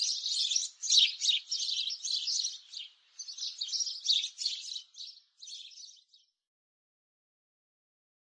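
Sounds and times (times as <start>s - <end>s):
sparrows chirping: 0.0s - 6.4s.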